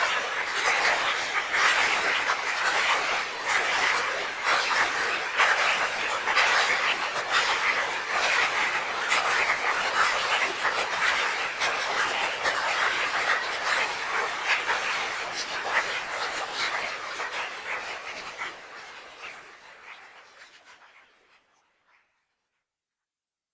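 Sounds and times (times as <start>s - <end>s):
applause: 0.0s - 18.7s.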